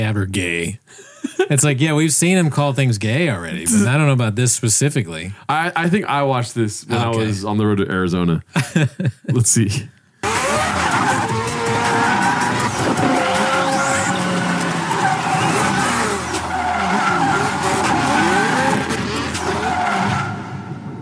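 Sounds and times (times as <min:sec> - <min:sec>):
speech: 0:00.0 - 0:10.0
laughter: 0:01.1 - 0:01.6, 0:03.4 - 0:04.0, 0:08.6 - 0:09.8
Mazda RX-7 race car tires skidding: 0:10.2 - 0:20.7
race car engine roaring: 0:10.2 - 0:20.7.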